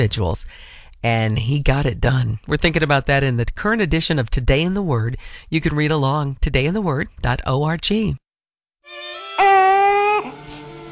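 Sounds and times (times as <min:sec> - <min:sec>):
speech: 0:00.0 - 0:08.2
newborn baby crying: 0:08.9 - 0:10.6.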